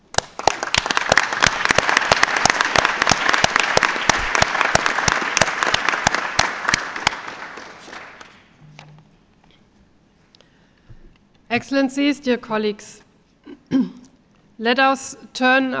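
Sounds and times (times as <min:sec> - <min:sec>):
audience applause: 0:00.0 - 0:08.5
speech: 0:11.6 - 0:13.0, 0:14.6 - 0:15.7.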